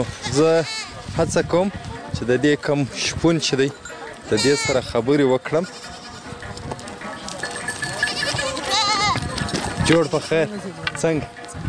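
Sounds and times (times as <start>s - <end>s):
goats and sheep bleating in a herder's grazing flock: 0.0s - 1.0s, 3.9s - 10.7s
speech: 0.0s - 5.9s, 9.9s - 11.4s.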